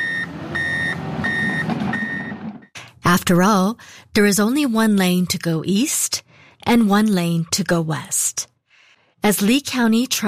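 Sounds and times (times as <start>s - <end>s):
continuous engine rumble: 0.0s - 2.7s
heavy vehicle reversing beeps at road work on Corkscrew Road in Estero: 0.0s - 2.8s
speech: 3.1s - 8.5s, 9.2s - 10.2s.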